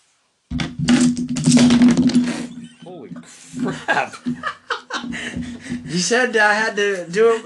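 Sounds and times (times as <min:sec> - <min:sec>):
handful of dice slammed onto a table: 0:00.9 - 0:02.3
laughter: 0:02.6 - 0:06.0
speech: 0:03.1 - 0:07.4.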